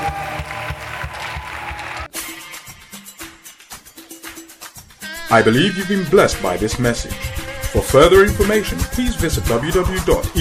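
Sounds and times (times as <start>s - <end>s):
audience clapping hands in rhythm in praise: 0.0s - 2.1s
crowd noise: 0.0s - 2.1s
live music: 0.0s - 10.3s
speech: 5.3s - 10.3s.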